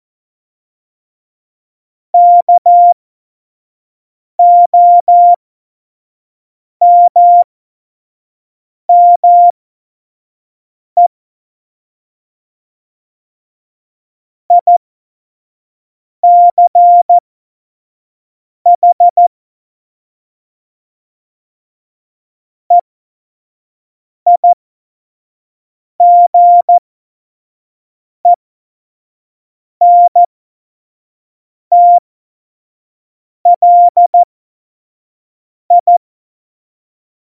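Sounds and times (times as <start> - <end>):
CW Morse code beeps: 2.2 - 3.0, 4.4 - 5.4, 6.8 - 7.4, 8.9 - 9.5, 16.2 - 17.2, 18.8 - 19.2, 24.3 - 24.6, 26.0 - 26.8, 29.8 - 30.3, 31.7 - 32.0, 33.5 - 34.2, 35.7 - 36.0.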